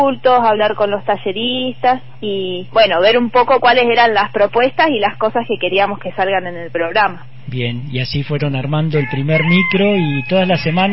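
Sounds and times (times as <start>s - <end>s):
speech: 0.0s - 10.9s
rooster crowing in a rural farm area: 8.9s - 10.9s.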